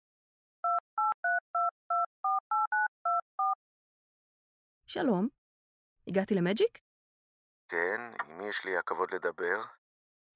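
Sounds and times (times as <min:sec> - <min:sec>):
mobile phone dialing tones: 0:00.6 - 0:03.6
speech: 0:04.9 - 0:05.4, 0:06.1 - 0:06.9, 0:07.7 - 0:09.8.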